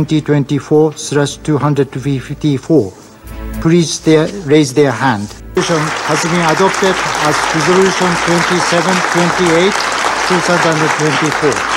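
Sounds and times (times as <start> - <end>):
speech: 0.0 - 3.0, 3.6 - 11.7
applause in the UN Security Council chamber after a resolution vote: 5.6 - 11.7.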